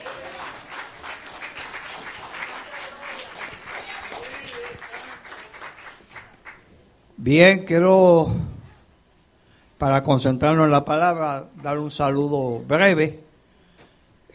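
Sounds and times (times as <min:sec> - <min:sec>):
audience applause: 0:00.0 - 0:06.7
speech: 0:07.2 - 0:08.5, 0:09.8 - 0:13.2.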